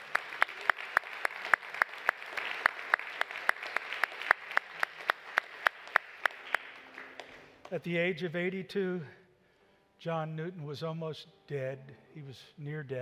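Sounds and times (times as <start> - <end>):
audience clapping in praise: 0.0 - 8.0
speech: 7.7 - 9.2, 10.0 - 12.9.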